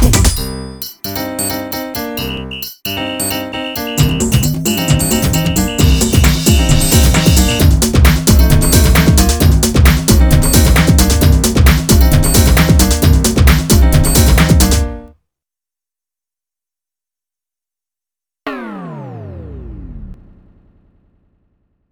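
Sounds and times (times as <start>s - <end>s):
instrumental music: 0.3s - 15.1s.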